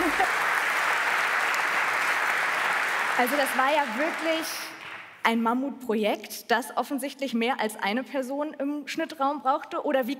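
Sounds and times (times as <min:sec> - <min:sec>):
audience applause: 0:00.0 - 0:05.1
speech: 0:03.2 - 0:10.1.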